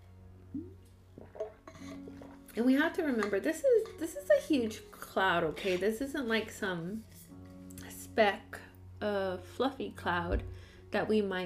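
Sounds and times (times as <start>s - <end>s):
speech: 0.6s - 0.8s, 2.6s - 7.1s, 8.2s - 11.4s
person sipping water from a glass: 0.6s - 2.5s.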